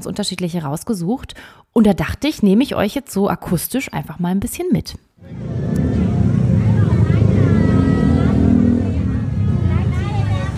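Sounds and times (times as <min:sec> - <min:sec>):
speech: 0:00.0 - 0:05.4
crowd chatter at Chinatown night market in Bangkok: 0:05.2 - 0:10.5
traffic rumble of car and motorbike engines beside Bangkok Chinatown night market: 0:05.2 - 0:10.5.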